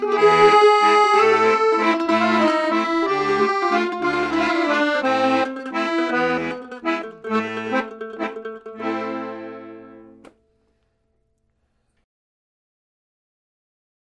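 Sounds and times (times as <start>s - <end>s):
Finnish family waltz: 0.0s - 10.2s.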